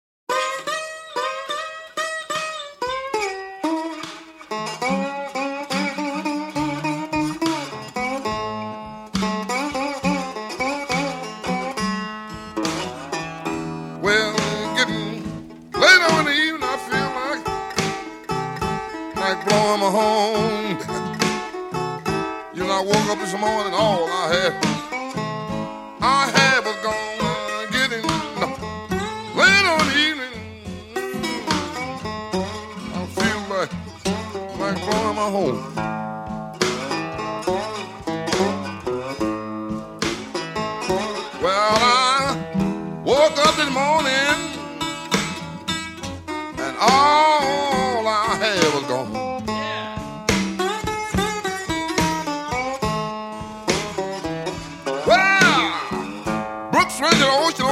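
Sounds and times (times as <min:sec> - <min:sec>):
slide guitar: 0:00.3 - 0:57.6.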